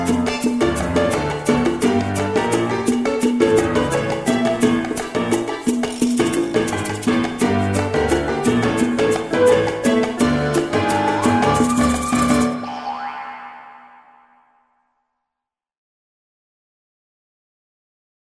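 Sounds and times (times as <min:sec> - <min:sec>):
maracas: 0:00.0 - 0:12.7.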